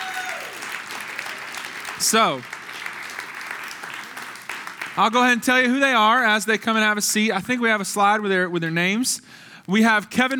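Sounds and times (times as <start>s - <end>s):
audience applause: 0.0s - 5.7s
speech: 2.0s - 2.6s, 5.0s - 10.3s.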